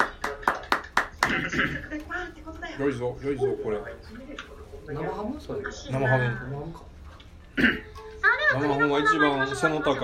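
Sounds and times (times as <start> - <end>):
hand clapping: 0.0 - 1.5
speech: 1.4 - 6.9, 7.6 - 10.0.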